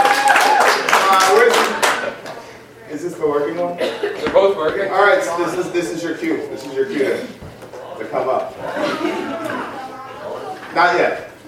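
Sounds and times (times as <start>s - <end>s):
hand claps: 0.0s - 2.4s
people chattering: 1.3s - 11.4s
laughter: 6.8s - 10.7s.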